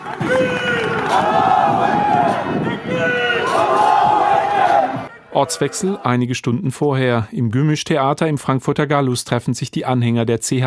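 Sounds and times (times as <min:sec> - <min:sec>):
crowd chanting Islamist battle cry: 0:00.0 - 0:06.1
speech: 0:05.4 - 0:10.6.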